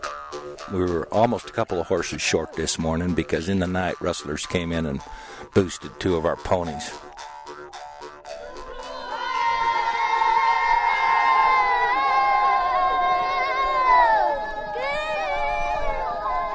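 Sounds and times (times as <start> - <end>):
speech: 0.5 - 7.1
children riders singing encouraging song to horses: 8.4 - 16.5.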